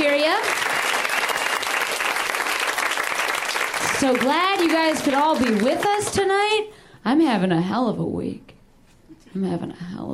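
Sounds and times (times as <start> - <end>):
audience clapping: 0.0 - 6.5
speech: 4.0 - 8.5, 9.3 - 10.1.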